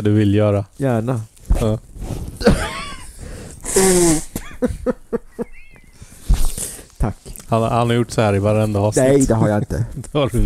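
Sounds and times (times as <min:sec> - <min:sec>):
speech: 0:00.0 - 0:02.8, 0:03.8 - 0:05.1, 0:07.0 - 0:10.4
nose blowing: 0:02.0 - 0:04.4, 0:05.8 - 0:07.0
laughter: 0:02.4 - 0:03.2, 0:04.0 - 0:06.1.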